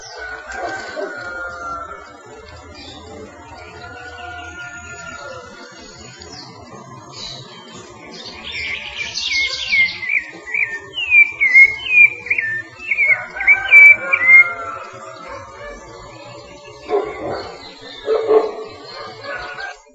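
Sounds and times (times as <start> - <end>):
Rufous-bellied thrush whistling: 9.4 - 15.0.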